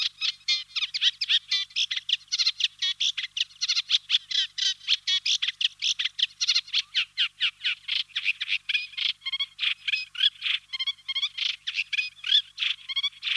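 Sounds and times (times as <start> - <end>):
Eurasian reed warbler Acrocephalus scirpaceus song: 0.0 - 13.3.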